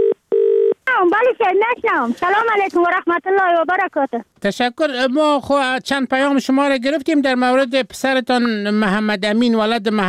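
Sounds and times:
electronic telephone tones as a call is dialed: 0.0s - 0.8s
speech: 1.3s - 10.0s.

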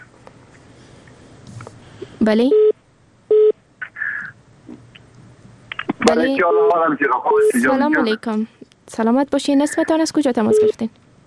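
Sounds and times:
speech: 2.2s - 2.6s, 6.2s - 11.0s
telephone call signal tones on a call-in line: 10.5s - 11.2s.

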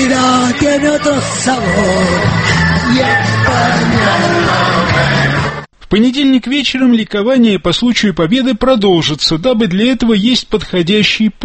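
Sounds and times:
tipsy crowd singing a patriotic song: 0.0s - 5.7s
speech: 0.1s - 11.4s.

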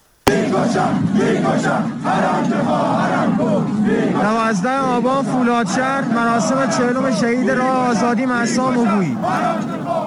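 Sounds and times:
large protest crowd chanting: 0.2s - 10.0s
speech: 0.6s - 9.8s.

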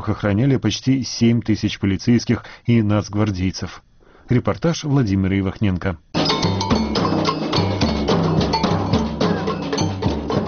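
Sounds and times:
speech: 0.0s - 6.6s
drums pounding at an equality street march: 6.2s - 10.4s
tambourines jingling at an equality street march: 6.2s - 10.4s.

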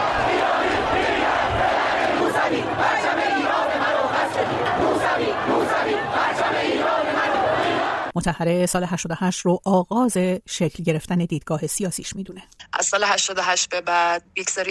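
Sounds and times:
protest crowd chanting and shouting: 0.0s - 8.1s
speech: 8.2s - 14.6s.

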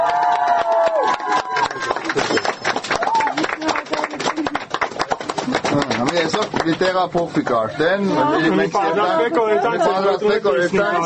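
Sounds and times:
people clapping for a low-income family receiving a new apartment: 0.0s - 7.8s
speech: 6.1s - 11.0s.

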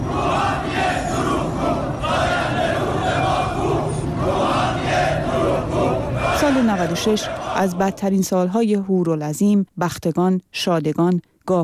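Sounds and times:
steady outdoor roar: 0.0s - 7.9s
protesting farmers chanting slogans outdoors: 0.0s - 8.2s
speech: 6.6s - 11.6s.

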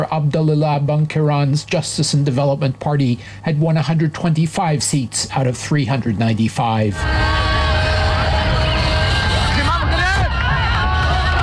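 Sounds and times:
speech: 0.0s - 8.4s
cars honking in the streets of Rabat: 7.0s - 11.4s
crowd cheering and applauding in street in Rabat: 7.0s - 11.4s.

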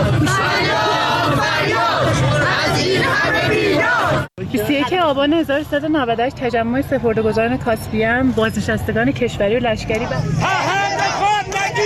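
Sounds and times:
protest crowd chanting slogans: 0.0s - 4.3s, 10.3s - 11.8s
speech: 5.1s - 10.9s.

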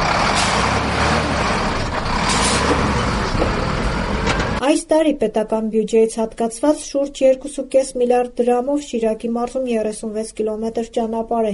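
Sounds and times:
freight trucks passing on a potholed stretch of the Gyumri–Armavir road: 0.0s - 4.6s
speech: 4.9s - 11.5s.

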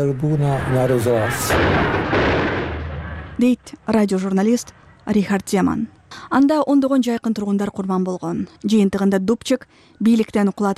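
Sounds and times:
speech: 0.0s - 2.4s, 3.4s - 10.7s
soldiers firing guns toward a radio building: 1.2s - 3.4s.

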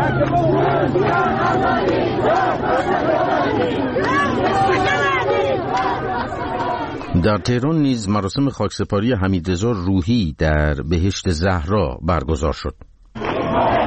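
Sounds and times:
crowd chanting slogans at a funeral: 0.0s - 7.7s, 13.2s - 13.8s
speech: 0.2s - 3.8s, 7.2s - 12.9s.

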